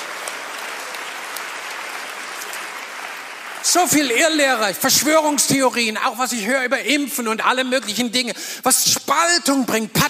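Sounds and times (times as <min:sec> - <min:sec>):
audience applauding: 0:00.0 - 0:05.8
speech: 0:03.6 - 0:10.0.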